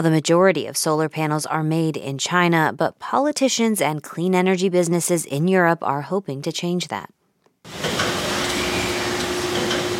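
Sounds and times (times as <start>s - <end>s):
speech: 0.0s - 7.8s
solar panel factory assembly floor machinery whirring: 7.7s - 9.9s.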